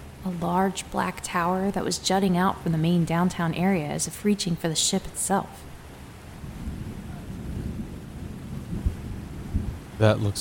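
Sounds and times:
speech: 0.2 - 5.7, 10.0 - 10.3
stormy hiss: 5.1 - 10.3
rolling thunder in a thunderstorm: 6.4 - 10.3.

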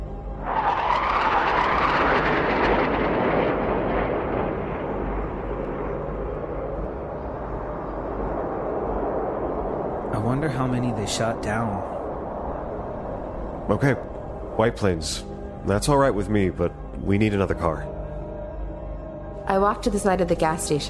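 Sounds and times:
jet aircraft flying by: 0.0 - 15.6
speech: 10.5 - 12.0, 13.7 - 17.9, 19.5 - 20.8.

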